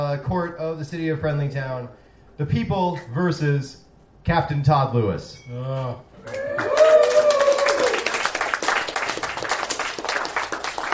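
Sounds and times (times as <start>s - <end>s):
speech: 0.0s - 6.7s
loud whooping cheer: 6.2s - 8.4s
audience applause: 6.2s - 10.9s.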